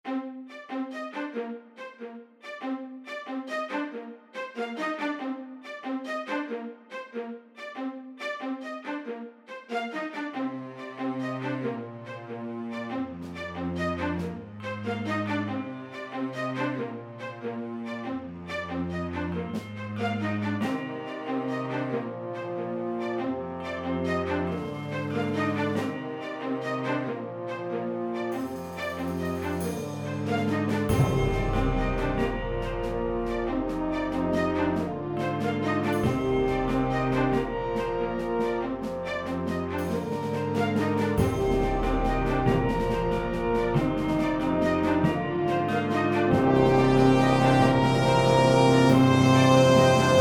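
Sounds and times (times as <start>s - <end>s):
orchestral music: 0.1s - 50.1s.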